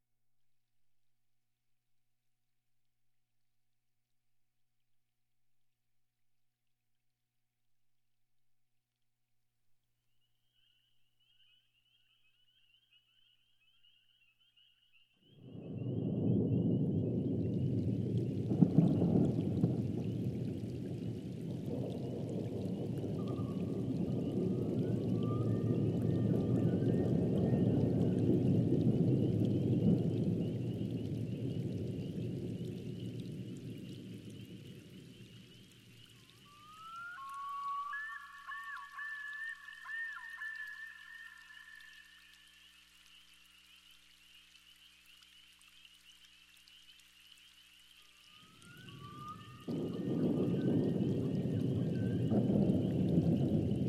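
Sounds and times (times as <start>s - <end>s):
thunderstorm: 15.4s - 35.6s, 48.4s - 53.8s.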